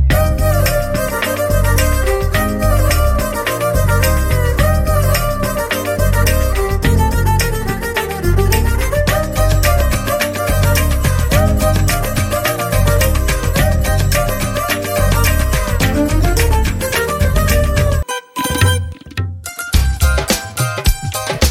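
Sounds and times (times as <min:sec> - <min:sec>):
Telugu ringtone music: 0:00.1 - 0:21.4.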